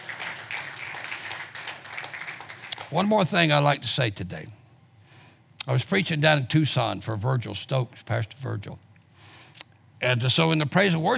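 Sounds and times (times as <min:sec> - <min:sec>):
audience clapping hands in praise: 0:00.0 - 0:03.4
speech: 0:02.9 - 0:04.6, 0:05.6 - 0:08.9, 0:10.0 - 0:11.1.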